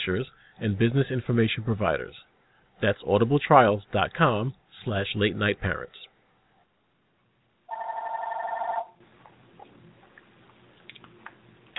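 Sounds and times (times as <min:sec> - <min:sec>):
speech: 0:00.0 - 0:06.1
telephone ringing: 0:07.7 - 0:09.0.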